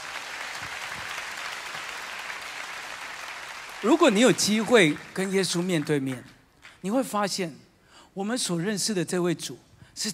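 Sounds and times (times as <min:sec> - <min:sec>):
audience clapping hands: 0:00.0 - 0:06.8
speech: 0:03.8 - 0:07.6, 0:08.2 - 0:10.1.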